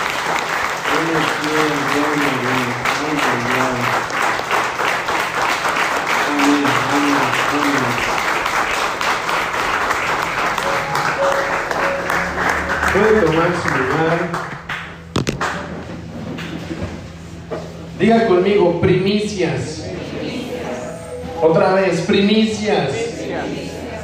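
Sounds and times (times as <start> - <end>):
audience applause: 0.0 - 15.7
speech: 1.1 - 4.2, 18.0 - 19.7, 21.4 - 23.6.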